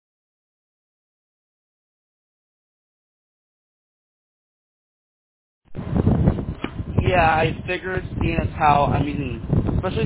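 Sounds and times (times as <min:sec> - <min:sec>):
wind buffeting the microphone outdoors: 0:05.7 - 0:10.0
speech: 0:07.1 - 0:10.0.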